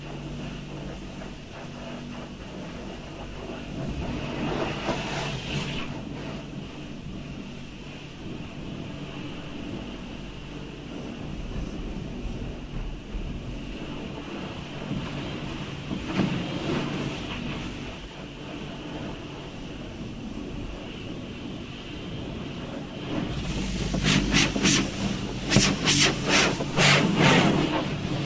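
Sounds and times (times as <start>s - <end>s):
car wash: 0.0s - 28.2s.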